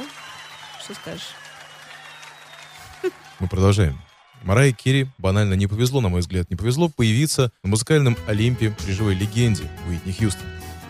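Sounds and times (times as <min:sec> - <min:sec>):
crowd applause: 0:00.0 - 0:05.8
speech: 0:00.9 - 0:01.4, 0:03.0 - 0:10.6.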